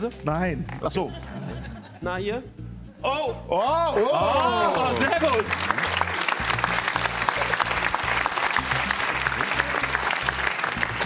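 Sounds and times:
speech: 0.0 - 5.7
laughter: 1.0 - 2.1
audience applause: 4.3 - 11.0.

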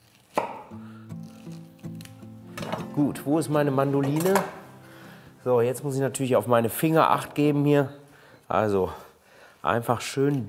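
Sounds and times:
knife cutting the core out of a halved fennel bulb: 0.0 - 2.7
speech: 3.0 - 4.6, 5.4 - 9.0, 9.6 - 10.4.

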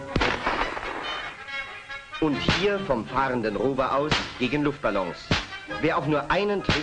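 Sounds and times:
carbine gunfire at a shooting range: 0.1 - 2.0
speech: 2.2 - 6.8.

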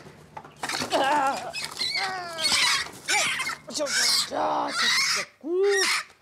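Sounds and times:
brooding hen squawking in alarm: 1.2 - 6.2
speech: 3.8 - 6.1.

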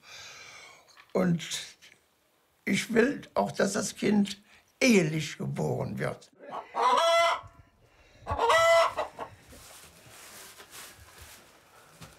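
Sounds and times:
speech: 1.2 - 1.7, 2.7 - 6.9
rooster crowing: 6.4 - 7.5, 8.3 - 9.1
chickens clucking: 6.4 - 7.6, 8.2 - 9.5
scratchy farmyard noise from chickens: 8.3 - 12.1.

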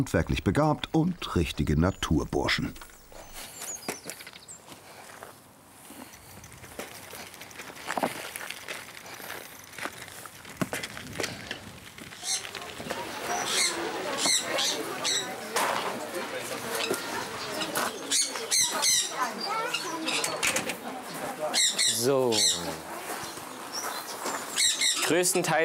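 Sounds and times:
speech: 0.0 - 2.9
birds calling in a zoo aviary: 0.2 - 4.7, 12.2 - 15.8, 16.5 - 25.4
wing flapping: 10.0 - 15.1.

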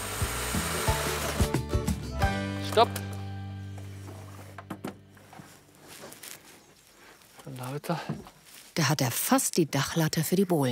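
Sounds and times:
sawing a door hole into a wooden facade in the southern Black Forest: 0.0 - 1.6
speech: 2.8 - 3.0, 7.8 - 10.7.

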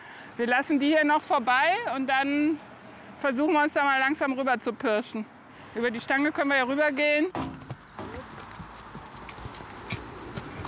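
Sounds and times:
noise: 0.0 - 10.6
speech: 0.4 - 7.5
horse hooves clopping on a hard surface: 7.3 - 10.6.

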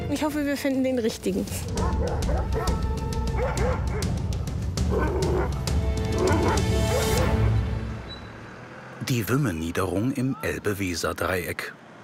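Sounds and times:
speech: 0.1 - 4.2, 4.9 - 5.6, 6.2 - 7.4, 9.0 - 12.0
dog barking: 1.7 - 4.2, 4.9 - 7.5.

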